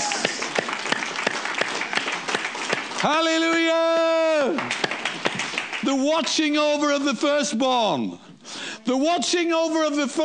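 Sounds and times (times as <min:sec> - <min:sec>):
audience clapping in a steady rhythmic beat: 0:00.0 - 0:07.2
speech: 0:03.0 - 0:04.9, 0:05.8 - 0:10.2.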